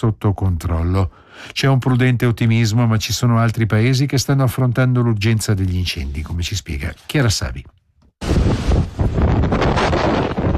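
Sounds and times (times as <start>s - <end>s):
speech: 0.0s - 8.6s
strong gusting wind on Crete: 8.2s - 10.5s.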